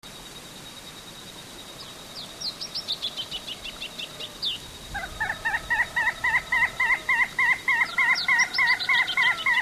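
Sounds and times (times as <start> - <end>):
ash-throated crake calling: 2.4 - 9.6.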